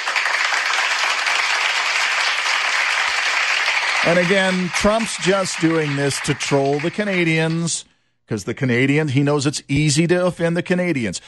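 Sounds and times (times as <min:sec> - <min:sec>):
crowd applause: 0:00.0 - 0:07.7
speech: 0:04.0 - 0:11.2.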